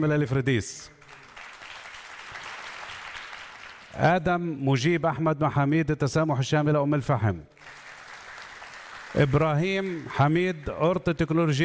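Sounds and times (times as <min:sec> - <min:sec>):
speech: 0:00.0 - 0:01.0, 0:04.0 - 0:07.5, 0:09.1 - 0:11.6
audience applause: 0:01.0 - 0:04.0, 0:07.6 - 0:10.8.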